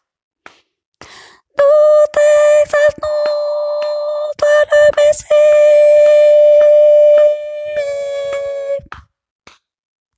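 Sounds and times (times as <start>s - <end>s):
tenor voice: 1.6s - 8.9s.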